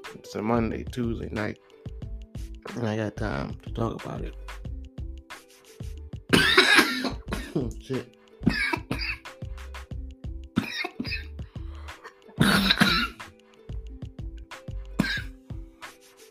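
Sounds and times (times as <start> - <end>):
speech: 0.3 - 1.8, 2.6 - 4.6, 7.6 - 8.6
person coughing and clearing throat from smoke: 6.3 - 7.7, 8.4 - 9.3, 10.6 - 11.3, 12.0 - 13.2, 15.0 - 15.4.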